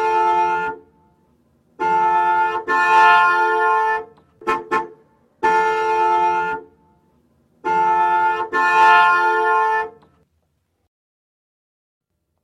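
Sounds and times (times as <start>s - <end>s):
car horn signals in 3D sound: 0.0s - 10.2s.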